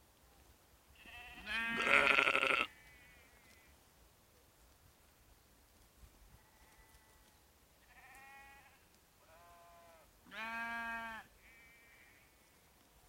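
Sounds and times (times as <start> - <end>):
sheep and lambs bleating: 1.0 - 3.6, 7.9 - 12.2.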